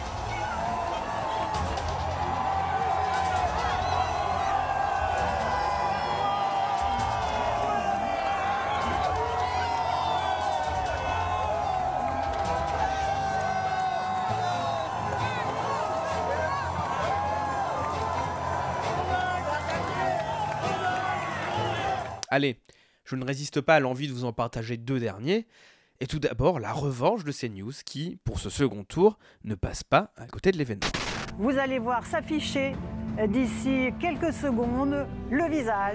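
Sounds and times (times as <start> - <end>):
overlapping shouts and high whoops: 0.0 - 22.2
large crowd cheering after election result: 0.0 - 22.3
speech: 22.4 - 35.9.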